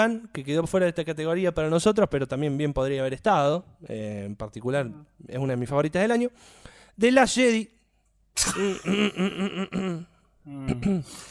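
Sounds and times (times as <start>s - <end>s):
speech: 0.0s - 7.8s, 8.4s - 11.2s
person in a coughing fit: 8.4s - 11.2s.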